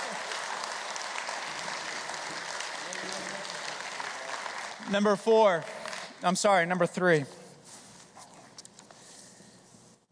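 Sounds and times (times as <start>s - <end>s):
audience applause: 0.0s - 6.2s
speech: 4.9s - 7.4s.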